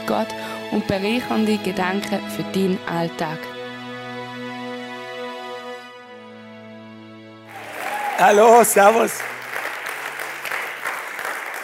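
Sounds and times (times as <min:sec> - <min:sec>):
speech: 0:00.1 - 0:03.5, 0:08.2 - 0:09.4
audience clapping: 0:07.5 - 0:11.6.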